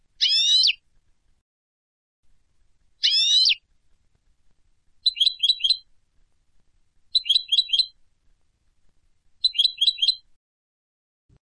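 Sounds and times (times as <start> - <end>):
European goldfinch Carduelis carduelis rapid bright chirps: 0.2 - 0.8, 3.0 - 3.6, 5.0 - 5.9, 7.1 - 8.0, 9.4 - 10.3.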